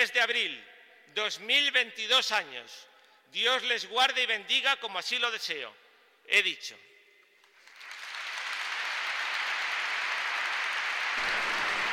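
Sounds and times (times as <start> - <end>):
speech: 0.0 - 6.9
applause in the Catedral de Valladolid: 7.4 - 11.9.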